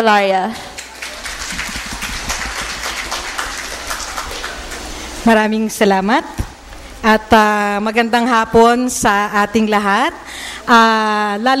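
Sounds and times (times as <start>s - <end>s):
speech: 0.0s - 0.7s, 5.2s - 6.4s, 7.0s - 11.5s
crowd clapping: 0.5s - 5.2s.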